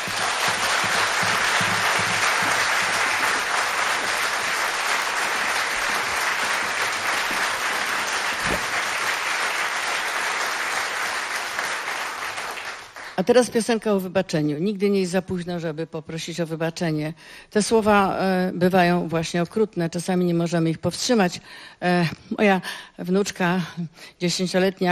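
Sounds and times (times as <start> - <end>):
audience applause at a charity concert in a hospice: 0.0 - 13.2
speech: 13.2 - 24.8.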